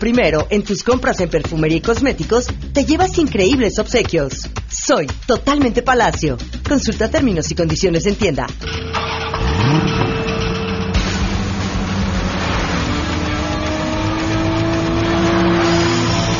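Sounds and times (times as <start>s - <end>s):
speech: 0.0s - 10.0s
sports car engine revving as the car accelerates: 8.7s - 16.3s.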